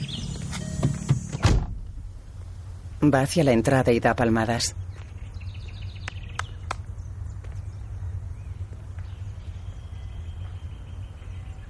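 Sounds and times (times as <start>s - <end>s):
low engine-like rumble: 0.0s - 11.6s
car door opening and shutting: 0.2s - 2.0s
speech: 3.0s - 4.9s.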